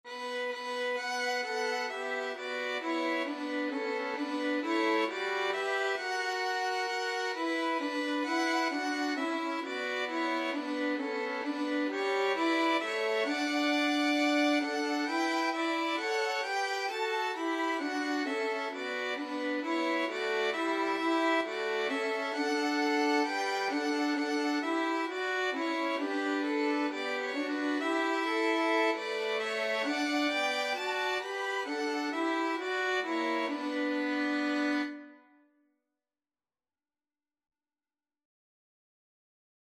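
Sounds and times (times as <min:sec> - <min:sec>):
violin trio: 0:00.1 - 0:35.2.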